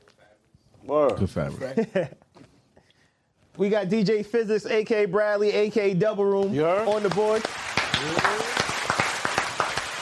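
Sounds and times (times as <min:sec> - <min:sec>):
speech: 0:00.8 - 0:02.2, 0:03.6 - 0:08.4
audience applause: 0:06.4 - 0:10.0.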